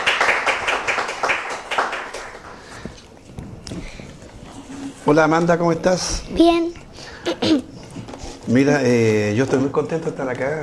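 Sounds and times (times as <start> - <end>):
applause: 0.0 - 2.8
speech: 5.1 - 6.7, 8.5 - 10.6.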